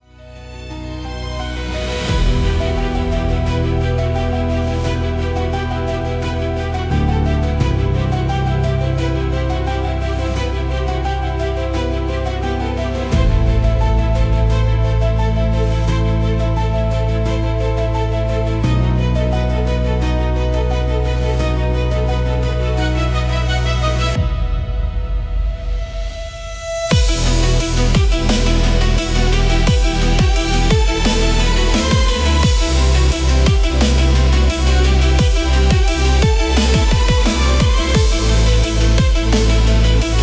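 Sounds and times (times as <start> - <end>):
suspenseful cinematic soundtrack music: 0.0 - 40.2.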